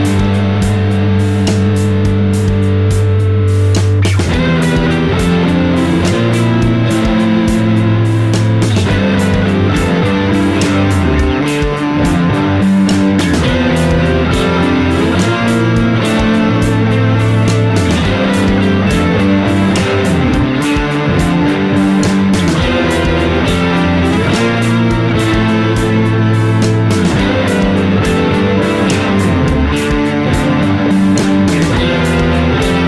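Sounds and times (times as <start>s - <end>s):
instrument played through modulation effects pedal: 0.0s - 32.8s.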